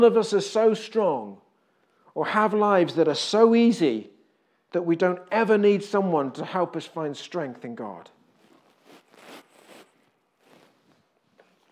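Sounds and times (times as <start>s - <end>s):
speech: 0.0s - 1.4s, 2.2s - 4.1s, 4.7s - 8.2s
beard rubbing against a microphone: 8.3s - 11.7s.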